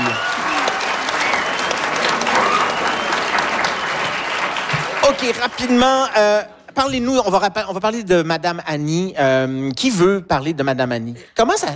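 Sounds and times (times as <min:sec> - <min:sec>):
audience applause: 0:00.0 - 0:06.1
speech: 0:05.1 - 0:11.7.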